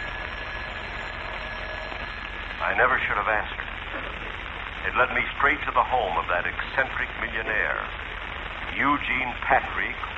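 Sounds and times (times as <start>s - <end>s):
telephone ringing: 0.0s - 3.0s
speech: 2.6s - 8.0s, 8.7s - 10.1s.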